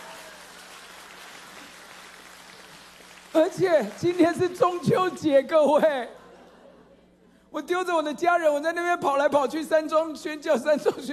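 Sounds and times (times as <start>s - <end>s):
audience applause: 0.0s - 4.8s
speech: 3.3s - 6.2s, 7.5s - 11.1s.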